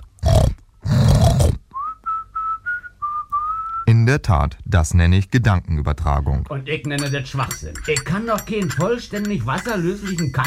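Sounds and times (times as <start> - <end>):
pig grunting in a pigsty: 0.0 - 1.6
speech: 3.9 - 10.4.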